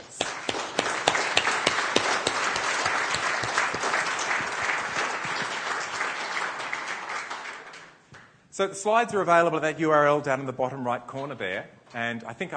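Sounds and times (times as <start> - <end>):
audience applause: 0.0 - 8.0
speech: 8.6 - 12.5.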